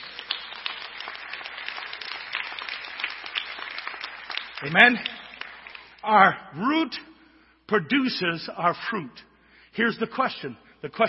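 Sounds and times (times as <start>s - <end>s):
audience hand clapping: 0.0s - 6.2s
speech: 4.6s - 5.2s, 6.0s - 7.1s, 7.7s - 11.0s.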